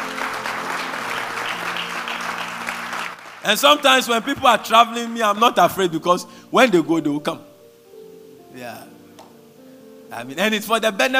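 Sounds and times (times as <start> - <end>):
audience clapping: 0.0 - 5.0
speech: 3.4 - 7.5, 8.6 - 8.9, 10.1 - 11.1.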